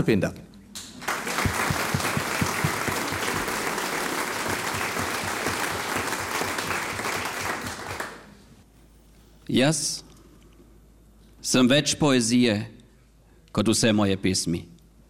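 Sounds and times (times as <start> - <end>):
speech: 0.0 - 0.5, 9.5 - 10.1, 11.5 - 12.8, 13.6 - 14.7
audience applause: 1.0 - 8.3.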